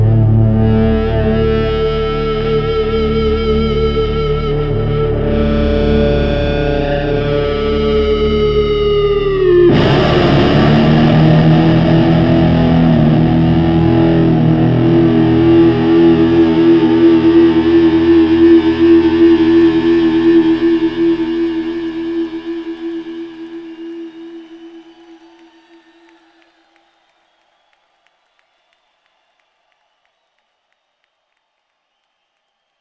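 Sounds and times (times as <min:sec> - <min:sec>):
guitar through Big Muff distortion pedal: 0:00.0 - 0:25.4.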